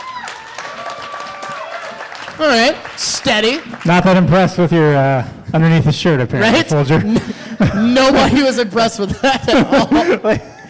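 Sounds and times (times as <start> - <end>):
cheering voices: 0.0 - 4.3
audience applause: 0.0 - 4.7
speech: 2.4 - 10.6
laughter: 6.8 - 10.6.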